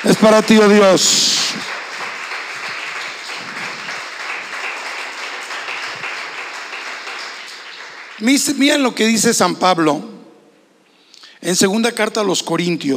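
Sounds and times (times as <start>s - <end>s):
speech: 0.0s - 1.7s, 8.2s - 10.1s, 11.4s - 12.9s
audience applauding loudly: 0.0s - 8.9s.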